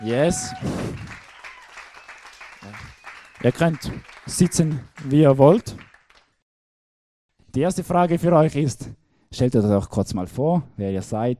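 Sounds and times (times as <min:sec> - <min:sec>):
speech: 0:00.0 - 0:01.2, 0:03.4 - 0:05.9, 0:07.6 - 0:11.3
audience applause: 0:00.0 - 0:06.3.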